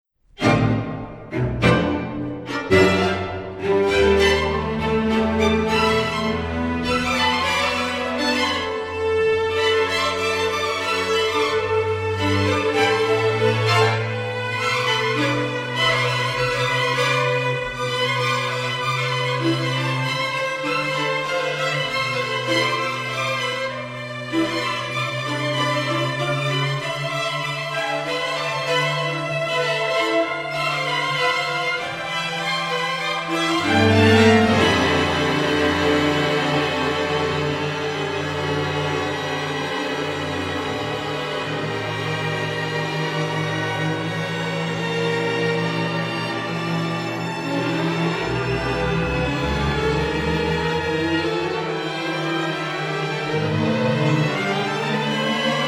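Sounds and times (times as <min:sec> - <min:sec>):
string chorus: 0:00.3 - 0:55.6.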